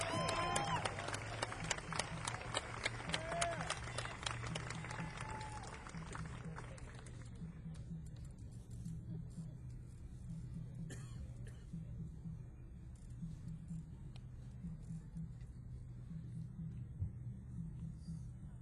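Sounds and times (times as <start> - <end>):
scattered cheers: 0.0 - 6.7
audience applause at jazz concert: 0.0 - 7.3
low steady hum: 0.0 - 18.5.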